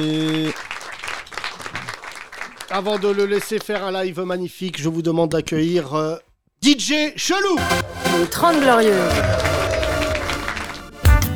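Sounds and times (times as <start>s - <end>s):
speech: 0.0s - 0.7s, 2.7s - 9.5s
audience applauding: 0.0s - 3.8s, 7.7s - 11.3s.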